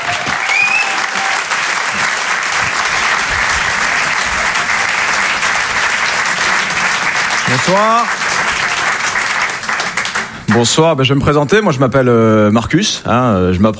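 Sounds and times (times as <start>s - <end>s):
applause: 0.0s - 10.8s
speech: 7.5s - 8.2s, 10.6s - 13.7s.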